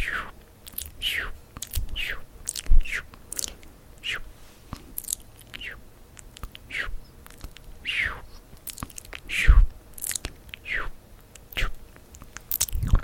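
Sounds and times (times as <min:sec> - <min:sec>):
soft breathy sounds: 0:00.0 - 0:00.4, 0:02.8 - 0:05.8, 0:06.6 - 0:07.2, 0:07.8 - 0:08.5, 0:09.2 - 0:09.7, 0:10.6 - 0:11.0
wet mouth clicking and smacking sounds: 0:00.0 - 0:13.0.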